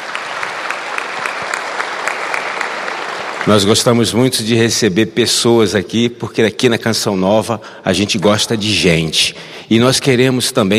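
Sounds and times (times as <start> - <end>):
audience applause: 0.0 - 4.2
speech: 3.4 - 10.7.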